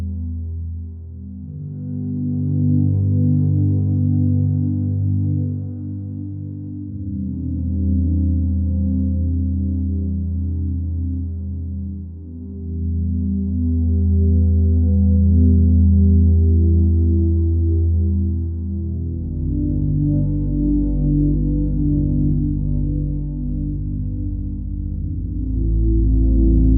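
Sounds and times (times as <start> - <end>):
ambient music: 0.0 - 26.7.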